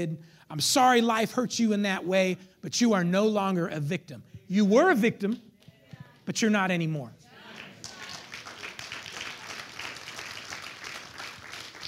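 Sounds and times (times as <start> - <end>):
speech: 0.0 - 5.5, 6.3 - 7.2
audience clapping: 7.4 - 11.8.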